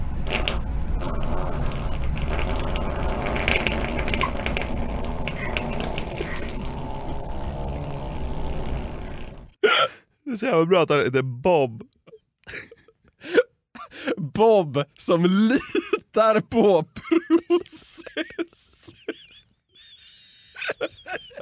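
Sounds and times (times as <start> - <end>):
recorded fart: 0.2 - 9.6
speech: 10.4 - 11.9, 14.4 - 18.7
laughter: 17.0 - 21.4.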